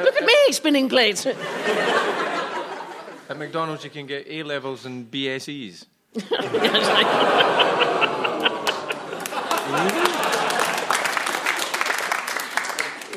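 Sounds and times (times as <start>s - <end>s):
speech: 0.0s - 2.3s, 3.3s - 8.2s
laughter: 1.3s - 3.6s, 6.2s - 13.1s
audience applause: 6.6s - 13.1s.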